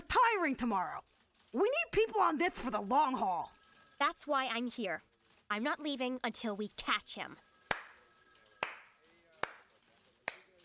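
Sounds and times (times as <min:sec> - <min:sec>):
speech: 0:00.3 - 0:07.5
slow hand claps: 0:07.7 - 0:08.0, 0:08.6 - 0:10.5.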